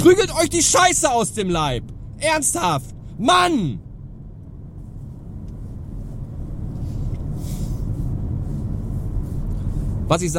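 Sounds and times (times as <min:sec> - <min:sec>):
speech: 0:00.0 - 0:03.8, 0:10.1 - 0:10.3
low road rumble from a car driven at 68 in a 60 zone: 0:00.0 - 0:10.3.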